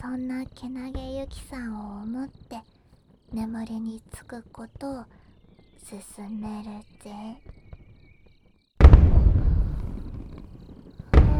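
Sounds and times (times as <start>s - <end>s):
speech: 0.0s - 2.7s, 3.3s - 5.2s, 5.8s - 7.6s
fireworks exploding: 8.8s - 11.3s.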